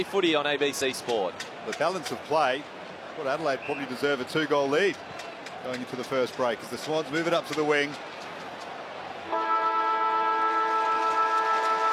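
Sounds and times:
speech: 0.0s - 8.1s
football match quarter-time siren blaring: 9.3s - 11.9s.

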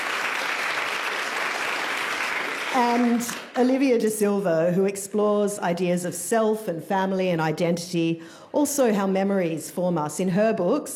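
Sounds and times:
audience applause for a speaker at a literary reading: 0.0s - 3.5s
speech: 2.8s - 10.9s.

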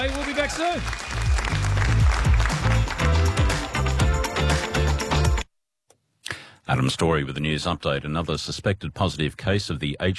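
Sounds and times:
speech: 0.0s - 1.2s, 6.7s - 10.1s
live crowd applauding: 0.0s - 5.0s
pulsing bass-heavy music bed: 0.8s - 5.4s.

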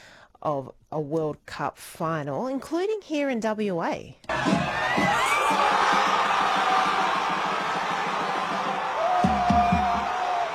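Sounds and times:
speech: 0.4s - 6.1s
pub crowd in Perth cheering at final whistle: 4.3s - 10.5s.

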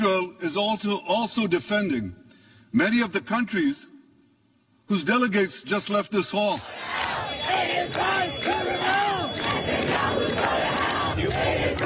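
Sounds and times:
speech: 0.0s - 3.9s, 4.9s - 9.0s
protesters near UN headquarters shouting and chanting: 6.6s - 11.8s.

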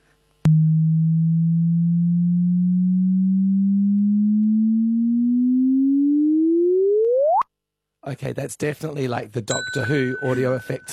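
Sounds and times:
gravitational-wave chirp picked up by a detector: 0.5s - 7.4s
speech: 8.1s - 10.9s.

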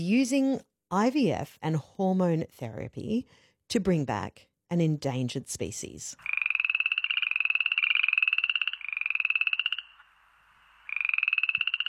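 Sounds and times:
speech: 0.0s - 6.3s
frogs croaking: 6.2s - 11.8s.

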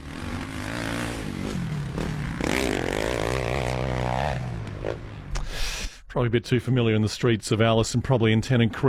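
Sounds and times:
dirt bikes ridden on footpaths: 0.0s - 5.4s
speech: 6.1s - 8.8s.

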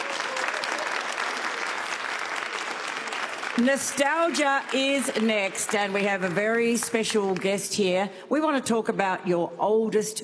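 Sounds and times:
audience applause: 0.0s - 7.4s
speech: 3.6s - 10.2s.

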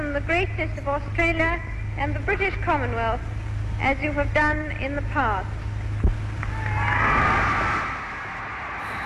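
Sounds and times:
speech: 0.2s - 5.6s
crowd cheering for the Queen in Newcastle: 6.3s - 9.0s.

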